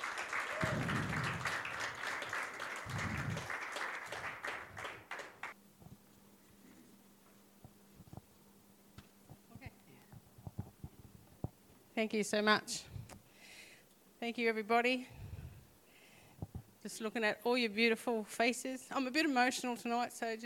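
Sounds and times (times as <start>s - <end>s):
audience applause welcoming a speaker at a women's supper event: 0.0s - 5.6s
speech: 12.0s - 12.9s, 14.2s - 15.2s, 17.0s - 20.4s.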